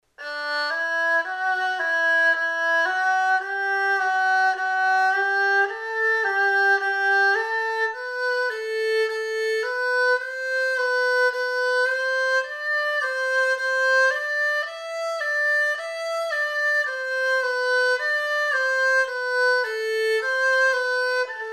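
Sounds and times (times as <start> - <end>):
erhu: 0.1 - 21.5.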